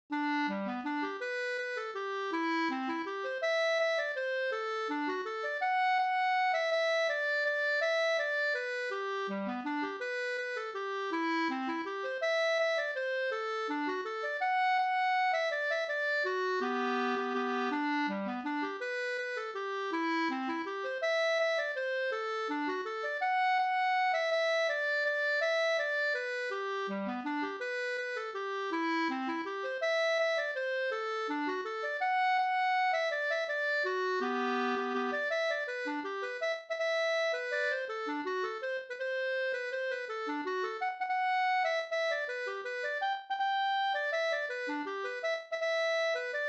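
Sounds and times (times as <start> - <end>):
bridal waltz music: 0.1 - 46.4.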